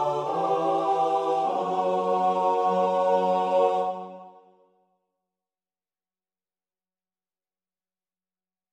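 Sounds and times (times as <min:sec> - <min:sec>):
four-part SATB choir singing a psalm: 0:00.0 - 0:04.5.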